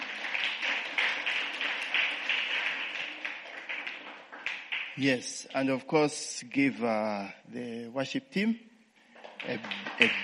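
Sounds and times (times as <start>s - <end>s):
audience applause, hand clapping: 0.0s - 5.6s, 9.2s - 10.2s
speech: 5.0s - 8.7s, 9.4s - 10.2s.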